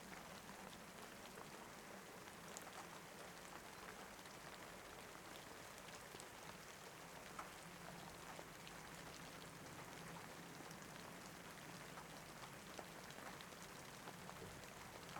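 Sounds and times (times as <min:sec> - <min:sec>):
rain: 0:00.0 - 0:15.1.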